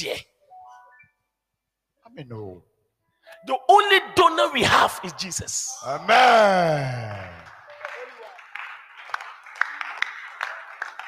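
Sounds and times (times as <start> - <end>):
speech: 0.0 - 0.3, 2.1 - 2.7, 3.4 - 7.4
audience clapping: 6.6 - 11.0.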